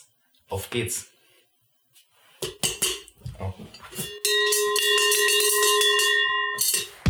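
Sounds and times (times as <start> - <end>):
speech: 0.5 - 1.2
cowbell ringing: 3.7 - 7.0.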